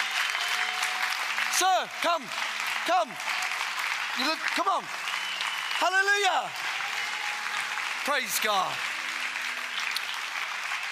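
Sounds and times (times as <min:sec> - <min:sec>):
audience clapping and applauding: 0:00.0 - 0:10.9
speech: 0:01.6 - 0:03.4, 0:04.2 - 0:05.0, 0:05.8 - 0:06.7, 0:08.0 - 0:08.9.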